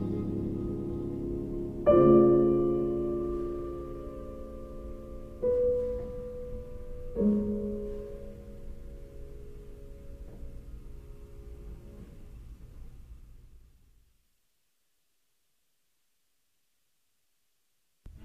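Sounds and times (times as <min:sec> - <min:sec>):
piano: 0:00.0 - 0:13.5.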